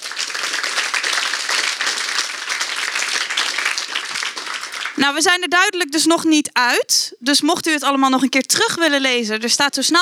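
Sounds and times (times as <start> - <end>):
audience applause: 0.0 - 5.0
speech: 5.0 - 10.0.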